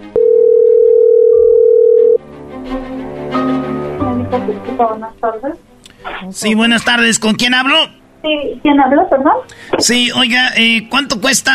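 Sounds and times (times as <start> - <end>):
telephone dial tone while placing a call: 0.2 - 2.2
speech: 4.4 - 11.5
murky mix of tones and noise: 4.6 - 11.5.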